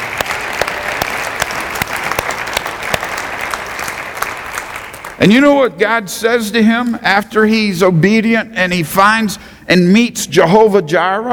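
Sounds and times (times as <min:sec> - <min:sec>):
audience applauding: 0:00.0 - 0:05.3
speech: 0:05.2 - 0:11.3.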